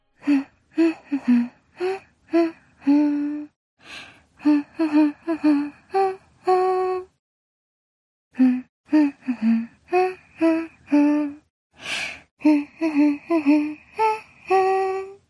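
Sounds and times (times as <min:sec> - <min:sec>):
person humming: 0:00.2 - 0:03.6, 0:04.4 - 0:07.2, 0:08.4 - 0:11.5, 0:12.4 - 0:15.2.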